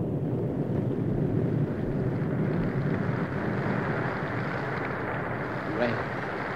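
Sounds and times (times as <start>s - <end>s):
rain falling: 0.0s - 6.5s.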